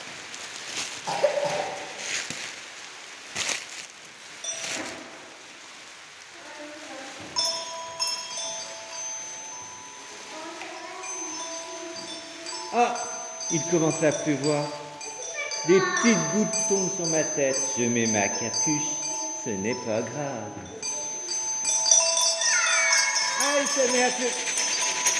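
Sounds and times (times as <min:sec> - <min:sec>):
dry leaves crunching underfoot in a forest: 0:00.0 - 0:18.8, 0:21.2 - 0:25.1
speech: 0:12.8 - 0:14.8, 0:15.6 - 0:20.8, 0:23.7 - 0:24.5.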